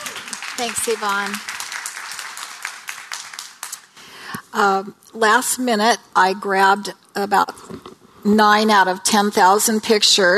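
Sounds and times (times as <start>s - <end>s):
audience applause welcoming speakers: 0.0s - 4.1s
speech: 0.6s - 1.5s, 4.5s - 10.3s.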